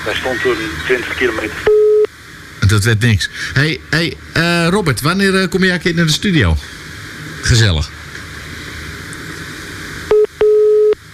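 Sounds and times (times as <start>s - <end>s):
speech: 0.0s - 1.8s, 2.7s - 6.8s, 7.4s - 8.0s
call waiting beeps on phone line: 1.6s - 2.1s, 10.1s - 11.0s.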